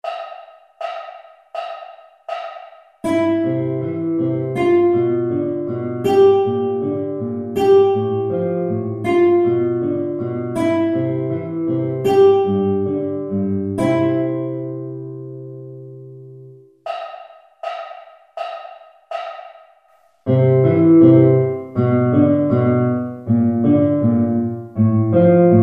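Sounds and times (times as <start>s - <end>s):
guitar first string: 3.0s - 15.8s, 20.3s - 25.6s.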